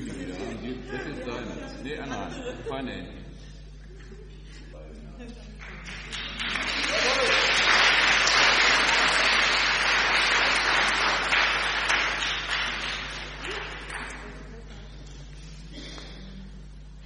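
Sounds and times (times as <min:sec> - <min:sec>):
laughter: 0:00.0 - 0:07.8
speech: 0:01.8 - 0:03.2
audience applauding in church: 0:05.6 - 0:14.5.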